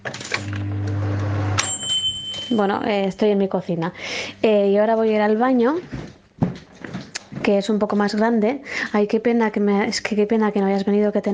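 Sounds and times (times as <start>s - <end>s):
microwave oven humming: 0.2s - 2.0s
speech: 2.5s - 6.0s, 7.4s - 11.3s.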